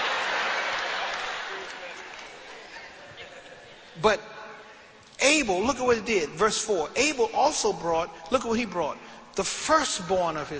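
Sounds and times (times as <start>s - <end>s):
crowd clapping: 0.0s - 3.0s
speech: 4.0s - 4.3s, 5.2s - 10.5s.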